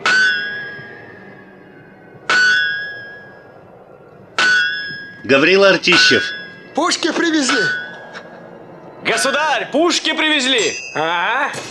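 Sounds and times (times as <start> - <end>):
blacksmith hammer striking red-hot workpiece: 0.0 - 1.0, 2.3 - 3.4, 4.4 - 6.6, 7.2 - 8.3
speech: 5.2 - 7.8, 9.1 - 11.6.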